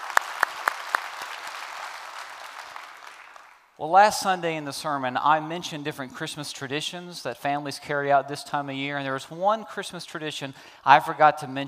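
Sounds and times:
church congregation applause welcoming another campus: 0.0 - 3.8
steady noise: 0.0 - 11.6
speech: 3.8 - 11.6.

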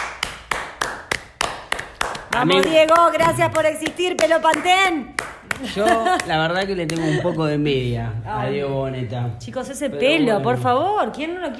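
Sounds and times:
sharp crisp hand claps: 0.0 - 7.1
speech: 2.3 - 11.5.

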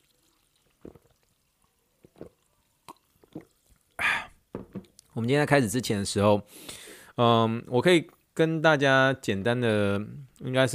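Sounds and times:
sparkling water pouring: 0.0 - 4.0
speech: 5.2 - 10.7.

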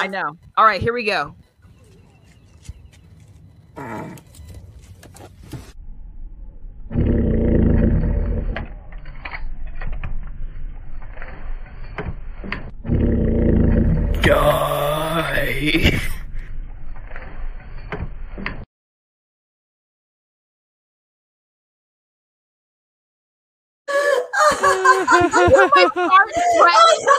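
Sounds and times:
speech: 0.0 - 1.4, 3.8 - 4.3
recorded fart: 6.9 - 8.7, 12.8 - 14.3
laughter: 14.3 - 16.2, 24.4 - 27.1.

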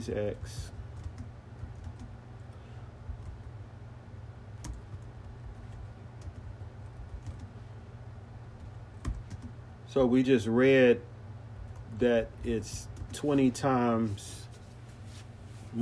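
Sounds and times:
speech: 0.0 - 0.8, 10.0 - 11.1, 12.0 - 14.4
low steady hum: 0.0 - 15.8
typing on a computer keyboard: 0.8 - 3.5, 4.6 - 7.6, 8.6 - 9.6.

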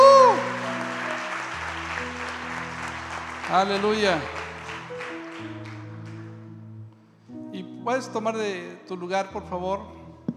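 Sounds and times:
audience applause: 0.0 - 6.3
speech: 3.5 - 4.4, 7.9 - 10.0.

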